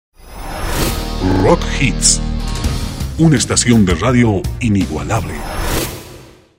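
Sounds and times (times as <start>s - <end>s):
rock music: 0.9s - 5.7s.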